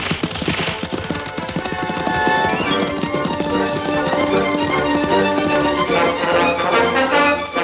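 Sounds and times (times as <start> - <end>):
horses of the Lone Ranger and Tonto galloping off: 0.0 - 7.2
loud orchestral music: 3.4 - 7.6.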